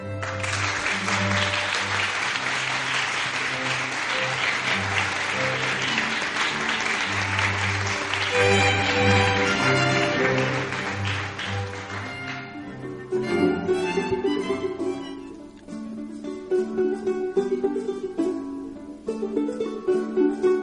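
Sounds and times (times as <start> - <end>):
audience applause: 0.0 - 14.3
held musical tone: 0.0 - 20.6.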